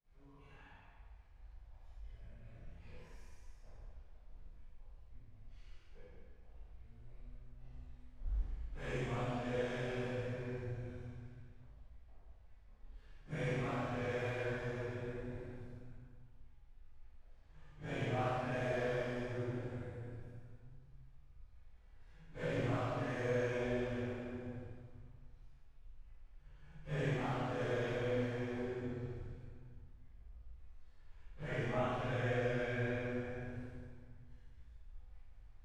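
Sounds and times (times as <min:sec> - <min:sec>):
choir singing: 0:08.8 - 0:11.2, 0:13.3 - 0:15.8, 0:17.8 - 0:20.2, 0:22.3 - 0:24.7, 0:26.8 - 0:29.4, 0:31.4 - 0:33.8.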